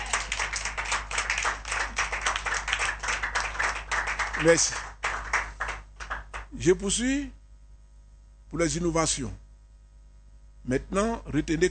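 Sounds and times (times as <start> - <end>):
audience applause: 0.0 - 6.4
speech: 4.4 - 4.9, 6.6 - 7.4, 8.5 - 9.4, 10.6 - 11.6.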